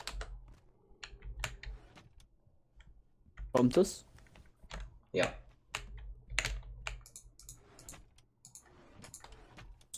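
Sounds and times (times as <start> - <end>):
computer keyboard typing: 0.0 - 0.4, 4.6 - 9.4
speech: 3.6 - 4.1, 5.2 - 5.4.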